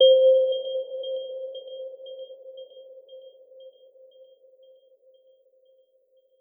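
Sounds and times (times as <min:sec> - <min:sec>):
bell: 0:00.0 - 0:04.5.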